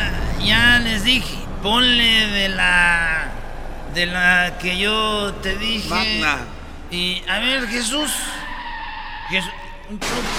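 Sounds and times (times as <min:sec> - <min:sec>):
car skidding: 0:00.0 - 0:10.3
speech: 0:00.4 - 0:03.3, 0:03.9 - 0:08.3, 0:09.3 - 0:10.3
car crashing: 0:08.4 - 0:10.3.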